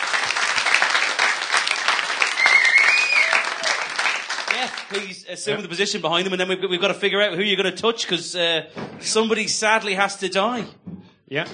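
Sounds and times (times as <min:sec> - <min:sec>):
audience applause: 0:00.0 - 0:05.3
speech: 0:04.6 - 0:11.5.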